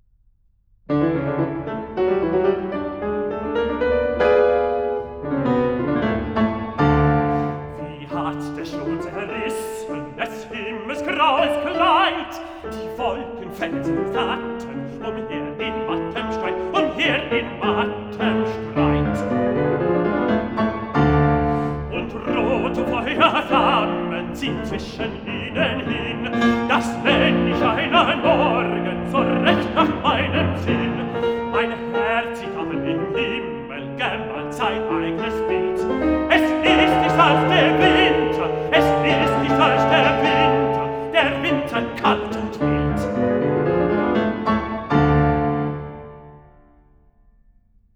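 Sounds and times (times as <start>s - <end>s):
piano: 0.9s - 47.9s
person singing a song cycle: 7.3s - 19.6s, 21.1s - 43.5s.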